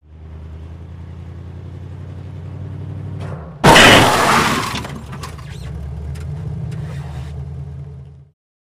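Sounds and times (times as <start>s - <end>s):
moving vehicle colliding with stationary vehicle: 3.2s - 6.9s
tire squeak: 5.0s - 7.6s.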